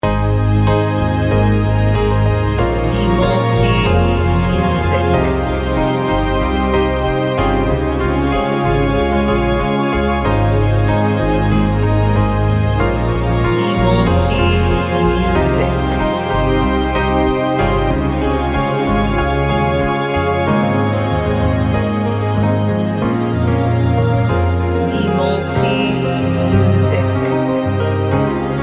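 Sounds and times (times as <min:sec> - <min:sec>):
instrumental modern piano: 0:00.0 - 0:28.6.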